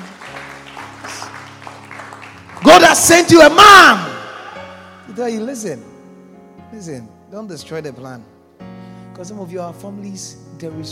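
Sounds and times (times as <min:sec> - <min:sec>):
audience clapping: 0:00.0 - 0:04.9
sustained low keyboard chords: 0:00.0 - 0:10.9
speech: 0:02.9 - 0:04.1, 0:05.2 - 0:05.9, 0:06.7 - 0:08.3, 0:09.2 - 0:10.9.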